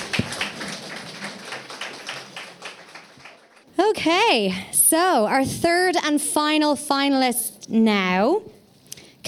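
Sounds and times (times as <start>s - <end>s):
audience applause: 0.0s - 3.7s
speech: 3.9s - 8.5s.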